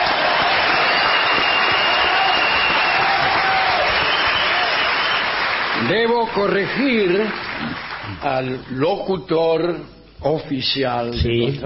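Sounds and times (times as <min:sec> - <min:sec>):
crowd bursting into a cheer: 0:00.0 - 0:08.3
speech: 0:05.9 - 0:11.6.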